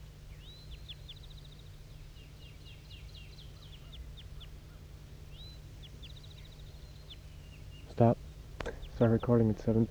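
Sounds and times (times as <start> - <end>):
wild bird flight calls: 7.7 - 9.8
speech: 8.0 - 8.2, 9.0 - 9.8.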